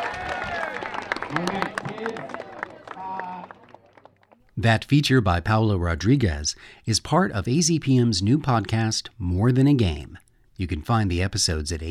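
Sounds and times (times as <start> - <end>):
crowd applause: 0.0 - 4.4
speech: 1.3 - 2.4, 4.6 - 11.8.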